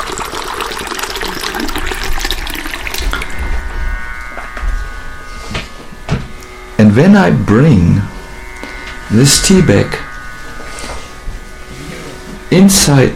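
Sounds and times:
water poured into a tea glass: 0.0 - 3.3
speech: 6.9 - 8.1, 9.1 - 10.0, 12.5 - 13.1.

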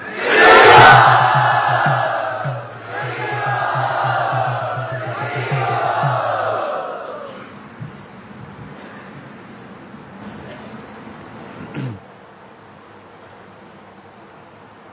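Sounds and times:
large audience cheering and shouting in welcome at a gathering: 0.0 - 7.4
rhythmic low pulse: 0.4 - 7.0.

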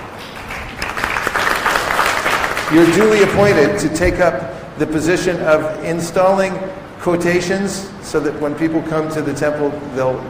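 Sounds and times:
audience applause at a temple gathering: 0.2 - 3.8
speech: 2.7 - 10.2.

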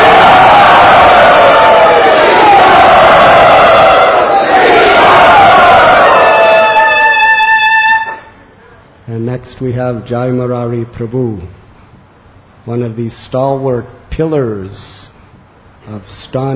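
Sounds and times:
devotional gathering loudly cheering to welcome a speaker: 0.0 - 8.4
speech: 9.6 - 11.6, 12.7 - 15.0, 15.9 - 16.5.

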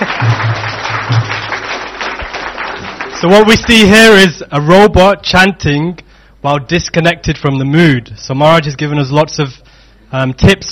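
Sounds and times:
audience applause for a robot: 0.0 - 4.2
speech: 3.2 - 10.7.

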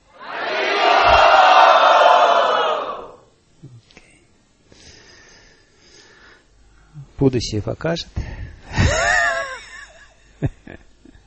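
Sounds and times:
large crowd shouting a chant: 0.1 - 3.2
speech: 7.2 - 9.0
laughter: 8.7 - 10.9.

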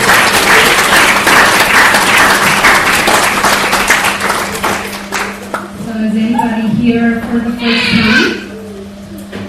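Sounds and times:
audience applause: 0.0 - 5.8
speech: 6.9 - 8.2.

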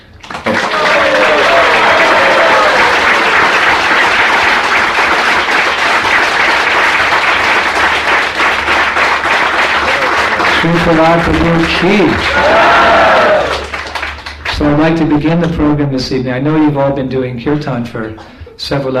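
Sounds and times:
crowd applause: 0.1 - 15.0
speech: 10.8 - 12.6, 14.6 - 18.9.

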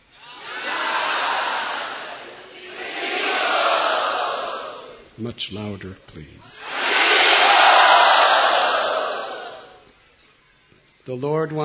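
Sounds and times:
crowd of devotees roaring and screaming: 0.1 - 5.0, 6.6 - 9.8
speech: 5.2 - 6.8, 11.1 - 11.6.

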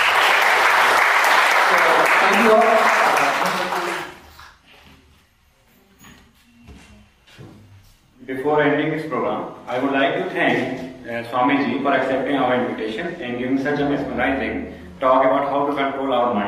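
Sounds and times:
audience applause: 0.0 - 4.6
speech: 2.3 - 3.6, 9.0 - 16.4.

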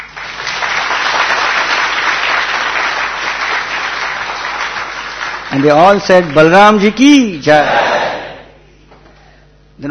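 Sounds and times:
audience clapping hands: 0.0 - 8.3
speech: 5.5 - 7.8.

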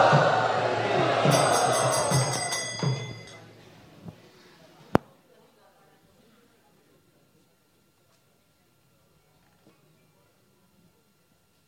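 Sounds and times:
crowd of devotees chanting at a Sharad Purnima festival gathering: 0.0 - 3.4.

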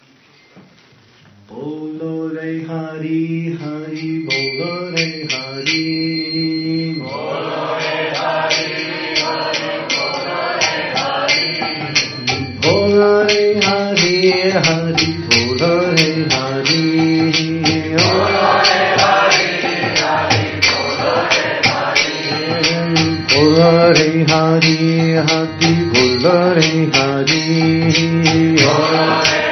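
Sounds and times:
kirtan devotional chanting: 1.4 - 29.5.

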